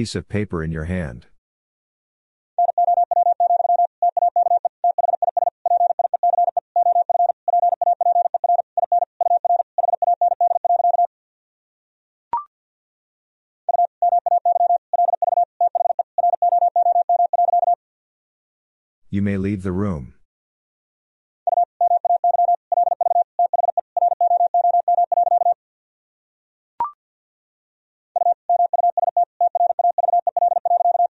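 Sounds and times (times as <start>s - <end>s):
speech: 0.0s - 1.3s, 19.1s - 20.2s
fast Morse code tones at 50 wpm: 2.6s - 11.1s, 13.7s - 17.8s, 21.5s - 25.6s, 28.2s - 31.1s.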